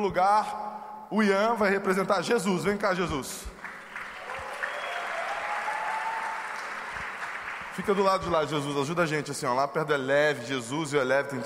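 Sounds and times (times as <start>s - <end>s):
speech: 0.0s - 3.6s, 7.8s - 11.4s
audience applause: 3.6s - 8.6s.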